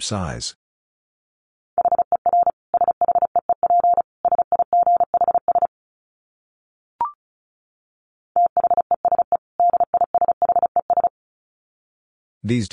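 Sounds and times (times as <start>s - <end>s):
Morse code tones at 35 words per minute: 1.8s - 5.7s, 8.4s - 11.1s.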